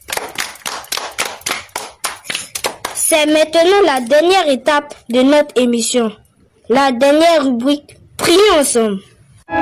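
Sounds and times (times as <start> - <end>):
audience clapping in rhythmic bursts: 0.0 - 3.1
speech: 3.1 - 9.5.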